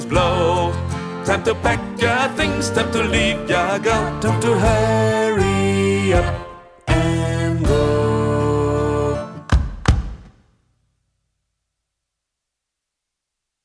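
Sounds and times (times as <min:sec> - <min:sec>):
tenor singing: 0:00.0 - 0:09.5.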